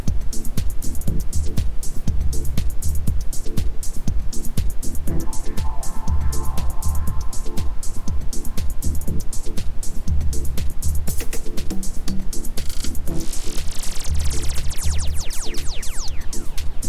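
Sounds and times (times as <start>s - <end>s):
isochronic tones: 0.0s - 16.8s
ambient sound: 4.3s - 16.8s.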